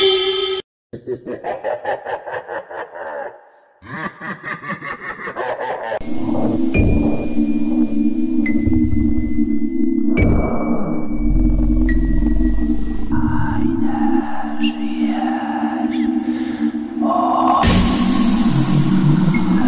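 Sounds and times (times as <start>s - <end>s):
laughter: 1.0s - 6.0s
horror sound effects: 6.0s - 19.6s.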